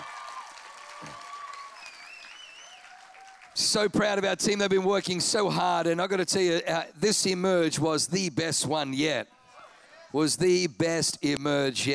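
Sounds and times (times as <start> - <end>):
audience round of applause: 0.0 - 3.6
speech: 3.6 - 9.4, 10.1 - 11.9.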